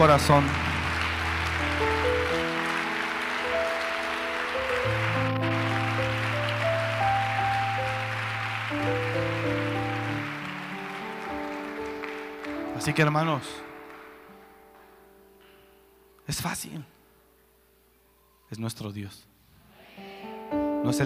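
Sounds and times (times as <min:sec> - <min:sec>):
speech: 0:00.0 - 0:00.6, 0:12.9 - 0:13.7, 0:16.3 - 0:16.9, 0:18.5 - 0:19.3, 0:20.5 - 0:21.0
audience applause: 0:00.0 - 0:14.5.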